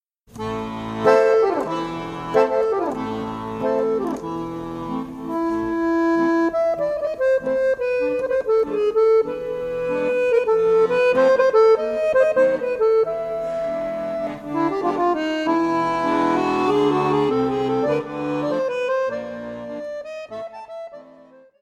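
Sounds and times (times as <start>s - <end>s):
Romanian hora folk dance music: 0.3s - 21.4s.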